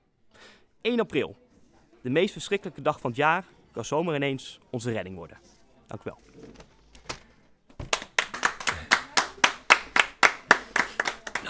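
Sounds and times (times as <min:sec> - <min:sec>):
speech: 0:00.8 - 0:01.4, 0:02.0 - 0:06.7
two listeners clapping: 0:07.8 - 0:11.4.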